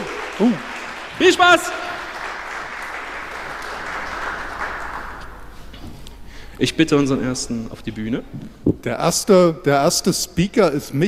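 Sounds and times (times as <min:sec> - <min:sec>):
crowd applauding: 0:00.0 - 0:05.5
speech: 0:00.4 - 0:01.9, 0:06.6 - 0:11.0.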